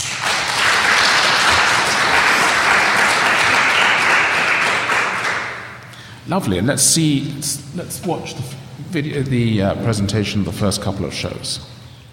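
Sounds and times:
audience applause welcoming the panel of an art review discussion: 0.0 - 5.8
speech: 6.3 - 11.8.

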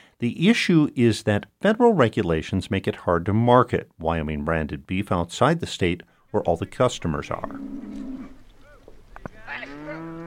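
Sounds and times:
speech: 0.2 - 8.1
cattle mooing on a cattle drive at the Black Market Farm near Centennial, Wyoming: 7.2 - 8.4, 9.4 - 10.2.

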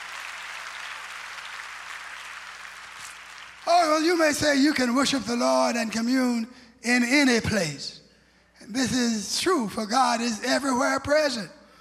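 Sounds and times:
audience clapping hands: 0.0 - 4.6
speech: 3.6 - 8.0, 8.6 - 11.6.

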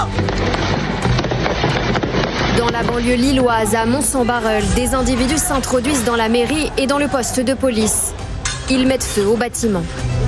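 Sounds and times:
firework mortar blasts: 0.1 - 3.7
speech: 2.9 - 10.1.

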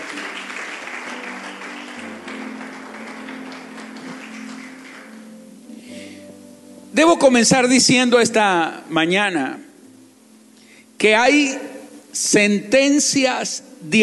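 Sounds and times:
audience applauding: 0.0 - 5.6
speech: 7.0 - 9.7, 11.0 - 14.0.

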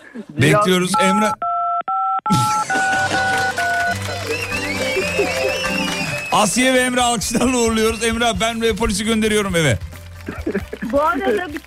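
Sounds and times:
speech: 0.1 - 1.4, 6.4 - 11.6
phone keypad tones pressed at random: 1.0 - 4.0
laughter: 3.3 - 6.2, 7.1 - 8.0, 10.2 - 11.6.

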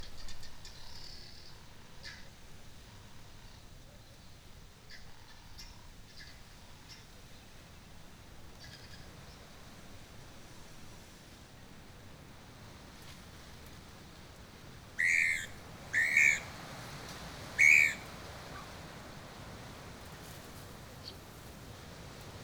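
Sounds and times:
steady low rumble of wind or background hum: 12.2 - 22.4
birds chirping and whistling at Mmabolela Reserve, Limpopo, South Africa: 15.0 - 16.6, 17.6 - 18.1
loud bright whistled bird calls at Mmabolela Reserve: 15.0 - 18.8.

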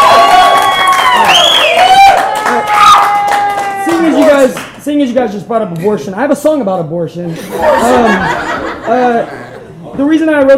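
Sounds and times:
audience applause and cheering: 0.0 - 4.8
speech: 5.2 - 9.4, 10.0 - 10.5
laughter: 7.3 - 9.9.

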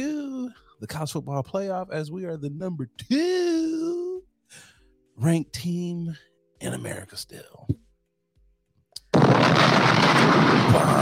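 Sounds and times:
speech: 0.8 - 3.6, 5.2 - 7.8
bomb explosion sound effect: 9.0 - 10.9.

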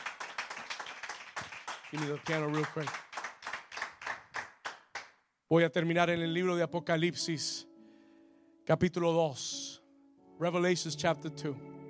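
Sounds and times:
audience clapping: 0.0 - 5.2
speech: 1.9 - 3.0, 5.5 - 7.7, 8.7 - 9.6, 10.4 - 11.7.

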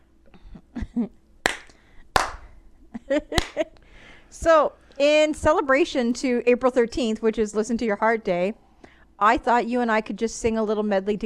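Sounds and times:
speech: 1.0 - 1.2, 3.1 - 8.6, 9.2 - 11.2
hand clapping: 1.4 - 2.5, 3.3 - 3.6.

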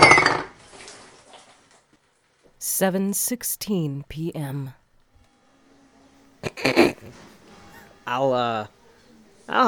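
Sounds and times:
half-empty bottle of sake knocked onto floor: 0.0 - 0.6
speech: 2.8 - 4.8, 8.1 - 8.8, 9.5 - 9.6.

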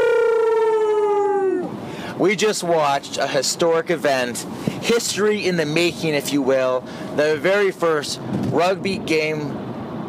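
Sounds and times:
people howling like wolves: 0.0 - 1.8
speech: 2.2 - 9.6.

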